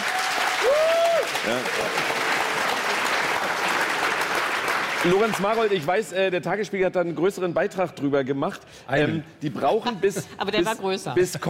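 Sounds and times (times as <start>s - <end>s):
audience applause: 0.0s - 6.0s
speech: 1.4s - 2.2s, 5.0s - 11.4s.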